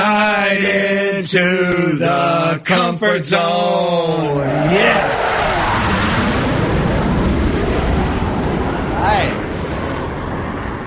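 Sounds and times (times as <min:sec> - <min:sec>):
speech: 0:00.0 - 0:05.6
jet aircraft engine roar with rising whine: 0:04.3 - 0:10.8.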